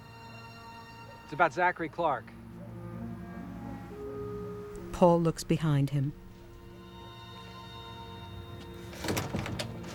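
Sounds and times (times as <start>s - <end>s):
speech: 1.3s - 2.4s, 5.0s - 6.2s
door opening: 8.4s - 9.9s.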